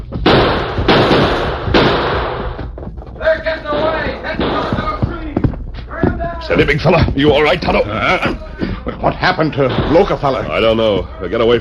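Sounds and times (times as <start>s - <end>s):
gunfire: 0.1s - 2.7s, 3.7s - 5.4s, 9.6s - 10.3s
speech: 6.5s - 8.4s, 9.0s - 11.5s
laughter: 6.5s - 10.2s.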